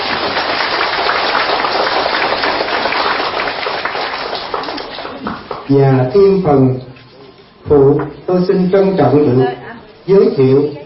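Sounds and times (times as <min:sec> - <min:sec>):
long round of audience applause: 0:00.0 - 0:05.7
speech: 0:05.7 - 0:06.9, 0:07.6 - 0:10.8.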